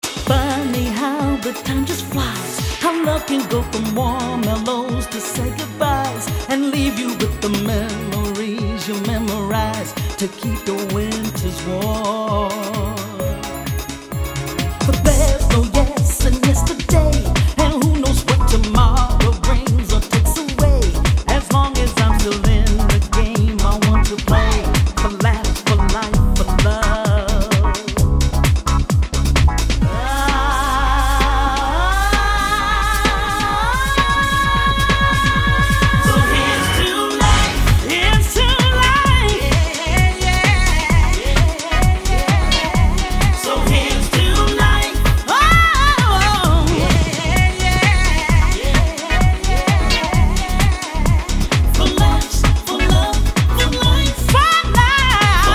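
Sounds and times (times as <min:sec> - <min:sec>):
house music: 0:00.0 - 0:55.5.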